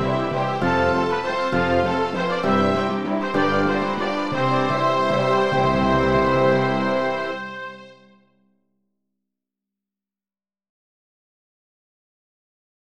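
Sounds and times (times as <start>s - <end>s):
waltz music: 0.0s - 8.1s.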